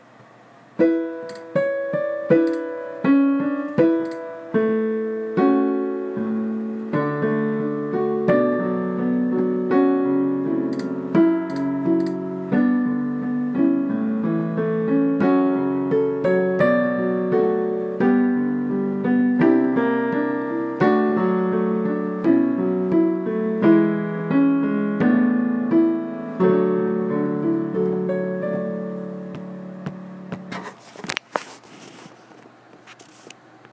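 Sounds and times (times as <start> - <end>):
solo piano: 0.7 - 30.8.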